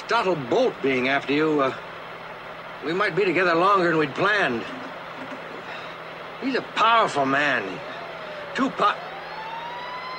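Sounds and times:
low steady hum: 0.0s - 10.1s
speech: 0.1s - 1.9s, 2.8s - 4.9s, 6.4s - 7.9s, 8.6s - 9.1s
police motorcycle siren whines: 6.8s - 10.1s.

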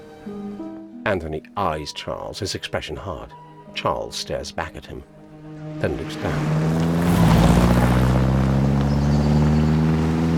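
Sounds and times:
speech: 1.0s - 5.2s, 5.8s - 6.9s
car tearing along the driveway towards Brideshead: 5.2s - 10.3s.

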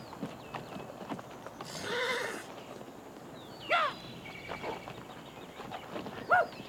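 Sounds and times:
ponies' hooves clip-clopping: 0.0s - 3.5s, 4.2s - 6.6s
pony whinnying: 1.6s - 2.5s.

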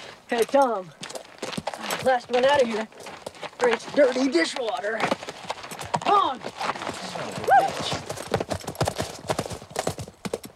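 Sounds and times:
horses' hooves clip-clopping as riders ride off: 0.0s - 10.5s
speech: 0.3s - 1.0s, 2.0s - 3.0s, 3.6s - 5.2s, 6.2s - 8.1s.

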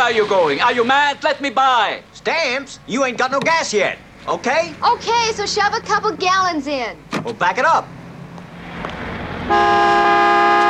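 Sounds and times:
low idling rumble: 0.0s - 9.3s
speech: 0.1s - 8.0s, 9.5s - 10.1s
car horn blast at a gas station: 9.4s - 10.6s.

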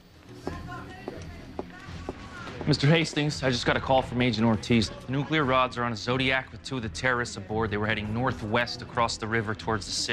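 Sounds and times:
hurried footsteps across an operations floor: 0.4s - 4.7s
speech: 2.7s - 10.1s.

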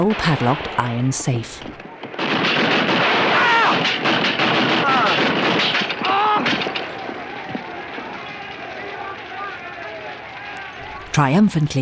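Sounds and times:
speech: 0.0s - 1.8s, 11.2s - 11.7s
Gatling gun firing: 0.0s - 11.4s.

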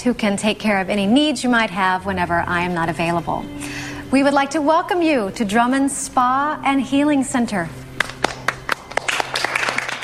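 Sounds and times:
speech: 0.0s - 7.8s
small group clapping to welcome staff at a spa and healing center: 8.0s - 10.0s.

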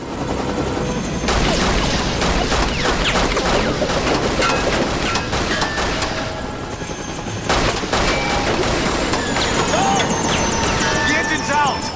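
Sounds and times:
helicopter roar and thump: 0.0s - 11.9s
bursts of gunfire at a helicopter: 1.3s - 6.2s, 7.4s - 9.6s.

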